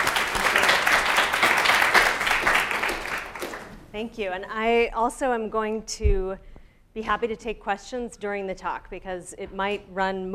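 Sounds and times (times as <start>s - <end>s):
audience applause welcoming a guest speaker: 0.0s - 3.8s
speech: 4.0s - 10.3s.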